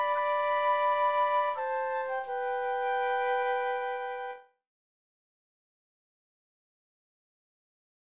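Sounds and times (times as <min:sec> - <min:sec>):
flute duet: 0:00.0 - 0:04.6.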